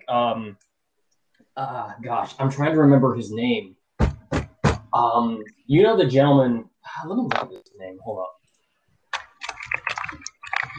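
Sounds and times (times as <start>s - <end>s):
speech: 0.1s - 0.7s, 1.6s - 3.8s, 4.9s - 8.4s
voice imitating typing on a computer keyboard with clicking syllables: 9.2s - 10.7s.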